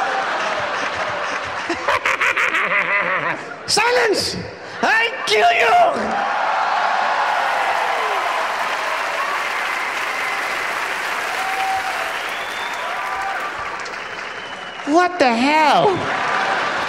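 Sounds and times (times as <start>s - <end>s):
audience applause: 0.0s - 2.4s, 6.2s - 16.8s
laughter: 0.0s - 3.6s
speech: 3.7s - 6.3s, 14.9s - 16.2s
faint audience whoops: 7.2s - 14.7s.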